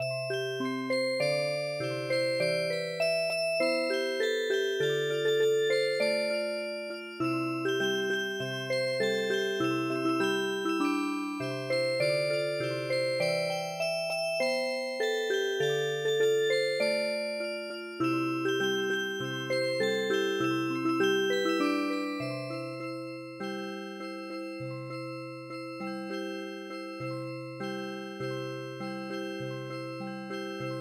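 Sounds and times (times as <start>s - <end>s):
music box: 0.0s - 30.7s.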